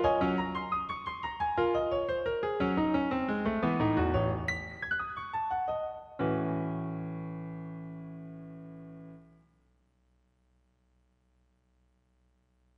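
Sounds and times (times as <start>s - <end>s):
piano prelude: 0.0s - 9.4s.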